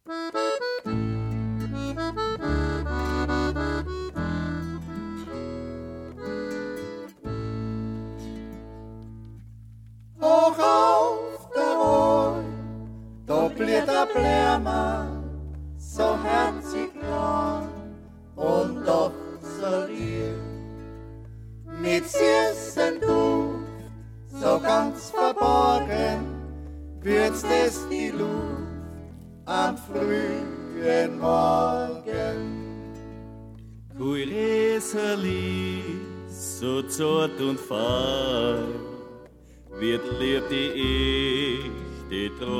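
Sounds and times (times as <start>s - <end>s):
folk music: 0.0s - 42.5s.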